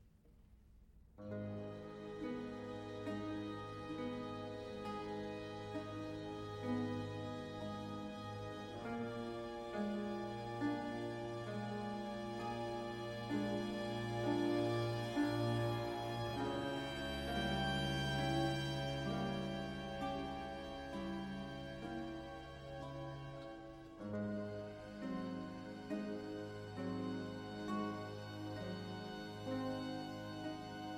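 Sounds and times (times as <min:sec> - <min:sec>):
string concerto in C major largo: 0:01.2 - 0:30.9.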